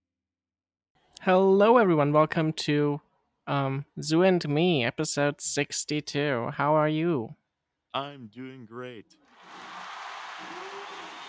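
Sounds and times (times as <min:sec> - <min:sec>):
speech: 0:01.2 - 0:09.7, 0:10.4 - 0:10.7
people cheering and clapping: 0:09.3 - 0:11.2
brief tonal shout: 0:09.4 - 0:11.2.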